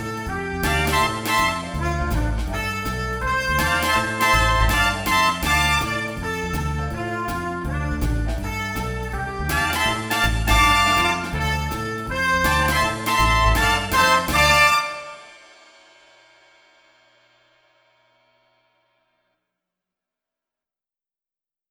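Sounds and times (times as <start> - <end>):
recorder playing a jive at learning speed: 0.0 - 15.3.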